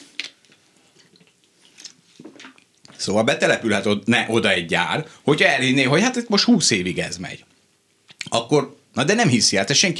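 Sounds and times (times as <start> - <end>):
person sipping a drink: 0.0 - 3.0
swallowing: 0.8 - 3.0
speech: 3.0 - 7.5, 8.4 - 9.9.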